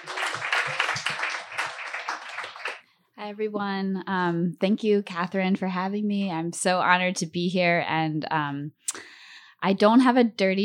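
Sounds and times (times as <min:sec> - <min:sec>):
audience round of applause: 0:00.0 - 0:02.8
speech: 0:03.2 - 0:09.0, 0:09.6 - 0:10.6.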